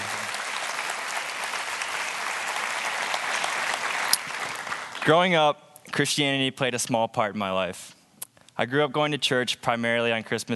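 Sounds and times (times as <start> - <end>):
audience applause welcoming a speaker: 0.0 - 5.4
speech: 5.0 - 8.0, 8.6 - 10.5.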